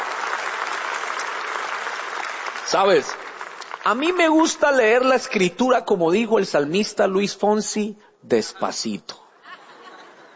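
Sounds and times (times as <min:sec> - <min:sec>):
applause: 0:00.0 - 0:05.1
speech: 0:02.7 - 0:03.2, 0:03.8 - 0:09.2
laughter: 0:08.5 - 0:10.3.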